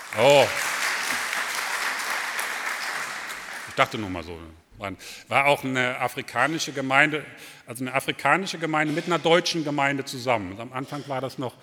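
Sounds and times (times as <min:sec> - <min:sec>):
audience clapping: 0:00.0 - 0:04.1
speech: 0:00.1 - 0:00.7, 0:03.8 - 0:11.6.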